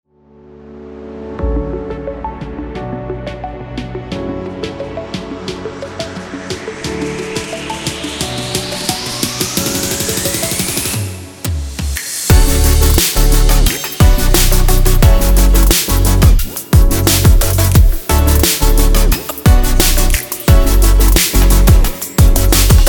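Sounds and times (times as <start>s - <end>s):
dynamic sport future bass music: 1.4s - 22.8s.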